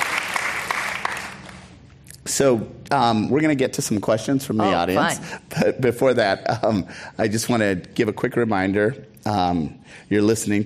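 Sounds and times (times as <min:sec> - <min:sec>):
audience applause: 0:00.0 - 0:01.7
speech: 0:02.3 - 0:10.6.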